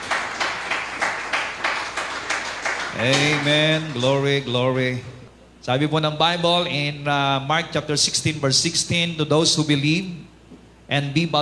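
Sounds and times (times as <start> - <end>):
worship congregation clapping hands in unison: 0.0 - 4.7
speech: 3.0 - 10.3, 10.9 - 11.3.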